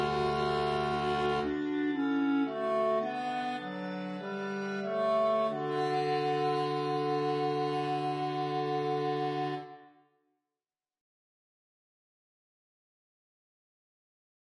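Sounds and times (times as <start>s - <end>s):
bass: 0.0s - 9.7s.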